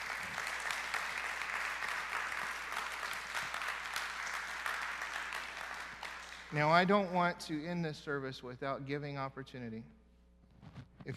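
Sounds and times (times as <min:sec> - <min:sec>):
audience clapping: 0:00.0 - 0:07.2
speech: 0:06.5 - 0:10.0.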